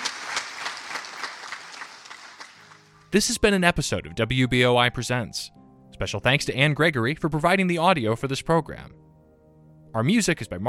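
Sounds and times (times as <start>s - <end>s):
audience applause at a live question-and-answer session: 0.0s - 3.0s
speech: 3.1s - 9.0s, 10.0s - 10.6s.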